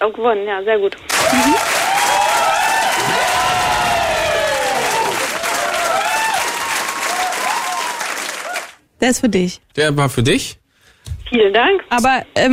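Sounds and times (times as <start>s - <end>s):
speech: 0.0s - 1.8s, 9.0s - 10.6s, 11.3s - 12.5s
audience applause: 1.1s - 8.8s.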